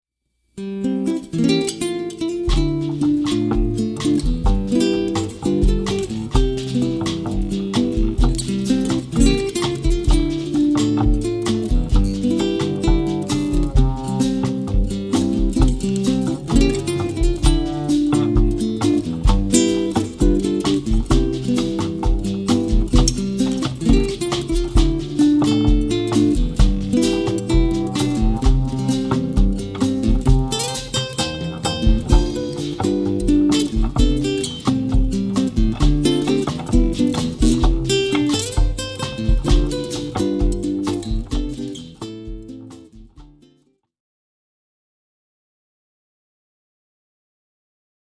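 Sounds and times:
jazz trio playing: 1.5s - 42.9s.

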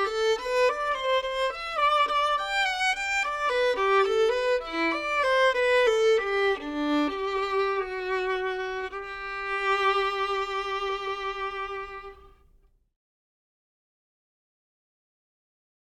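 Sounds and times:
classical solo violin piece: 0.0s - 12.6s.

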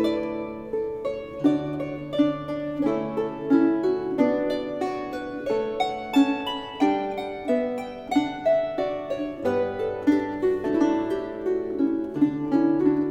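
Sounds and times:
harp playing: 0.0s - 13.0s.

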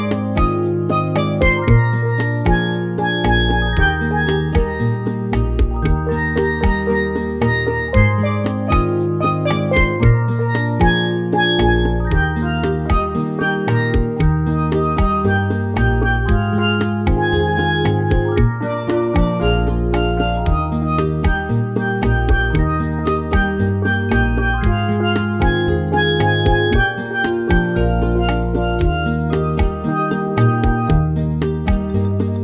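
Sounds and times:
steel drum: 0.0s - 32.4s.

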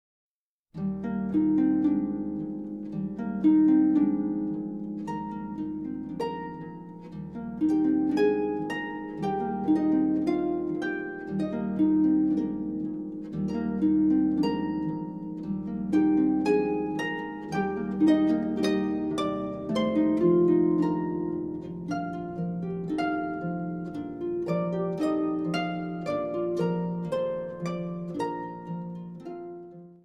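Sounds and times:
classical harp berceuse: 0.8s - 30.0s.

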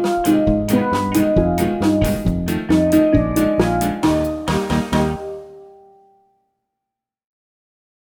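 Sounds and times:
steel drum band playing ska: 0.0s - 5.6s.

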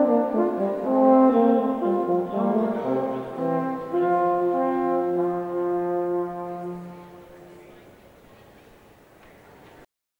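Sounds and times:
classical brass duo chamber music: 0.0s - 7.6s.

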